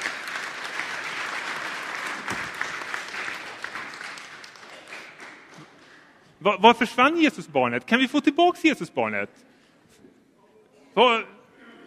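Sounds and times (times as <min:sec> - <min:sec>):
audience applause: 0:00.0 - 0:06.0
speech: 0:06.4 - 0:09.5, 0:11.0 - 0:11.8.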